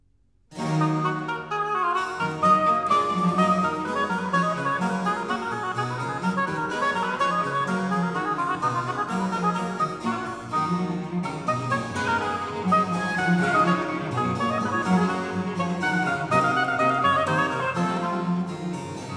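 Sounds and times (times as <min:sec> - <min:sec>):
sonata for oboe and continuo in E minor: 0:00.5 - 0:19.1.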